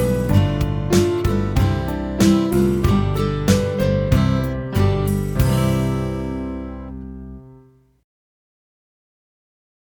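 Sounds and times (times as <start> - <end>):
fast song in C major: 0.0 - 7.6.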